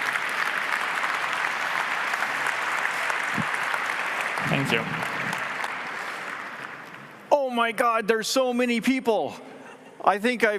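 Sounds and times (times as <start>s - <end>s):
audience applause: 0.0s - 7.2s
speech: 4.5s - 5.0s, 7.6s - 10.5s.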